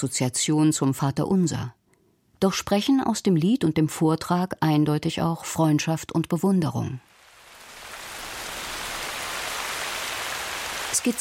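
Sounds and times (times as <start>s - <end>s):
speech: 0.0s - 1.8s, 2.4s - 7.1s
rain falling: 7.1s - 11.1s.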